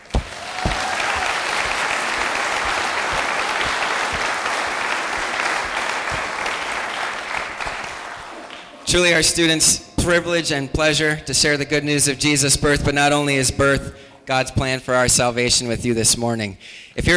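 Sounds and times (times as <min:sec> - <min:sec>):
audience clapping: 0:00.0 - 0:09.0
speech: 0:08.9 - 0:17.1.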